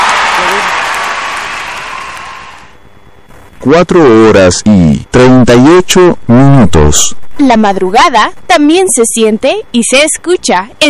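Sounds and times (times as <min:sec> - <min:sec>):
audience applause: 0:00.0 - 0:02.7
speech: 0:03.6 - 0:10.8.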